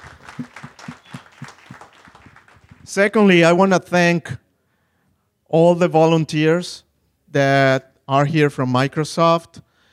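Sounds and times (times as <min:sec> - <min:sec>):
audience applause at an event: 0:00.0 - 0:02.9
speech: 0:02.9 - 0:04.4, 0:05.5 - 0:09.6.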